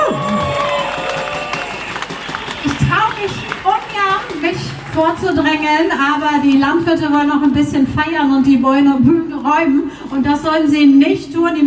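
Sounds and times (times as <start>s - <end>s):
person whooping: 0.0s - 1.8s
crowd at an environmental rally cheering and clapping: 0.0s - 7.0s
speech: 5.0s - 11.6s.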